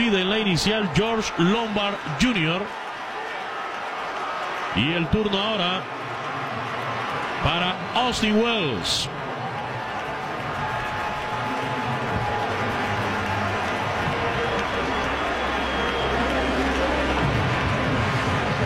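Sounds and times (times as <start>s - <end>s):
speech: 0.0s - 2.8s, 4.7s - 6.0s, 7.4s - 9.2s
baseball crowd at a Yankees game cheering pinch hitter Giancarlo Stanton: 0.0s - 18.6s.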